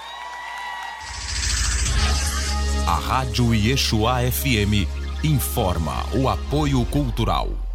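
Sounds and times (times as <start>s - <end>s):
crowd cheering and shouting: 0.0s - 1.5s
crowd applauding: 0.0s - 1.7s
speech: 2.9s - 7.6s.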